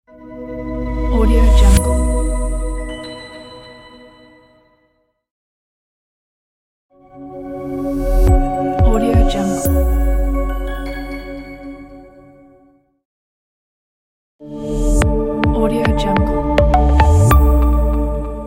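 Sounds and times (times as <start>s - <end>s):
bright commercial opener music: 0.2s - 4.6s, 7.1s - 12.4s, 14.6s - 18.4s.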